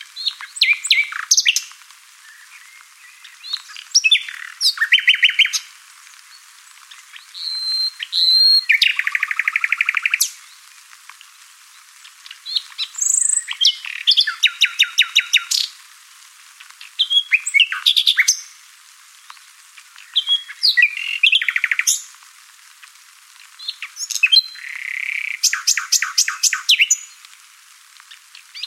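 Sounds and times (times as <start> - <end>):
Common nightingale song: 0.1 - 10.7, 11.7 - 15.7, 16.8 - 18.6, 20.0 - 22.1, 23.6 - 27.2.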